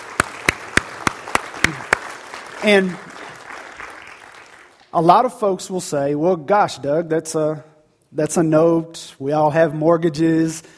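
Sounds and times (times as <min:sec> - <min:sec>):
rhythmic hand claps: 0:00.0 - 0:04.9
speech: 0:02.6 - 0:03.1, 0:04.9 - 0:10.7.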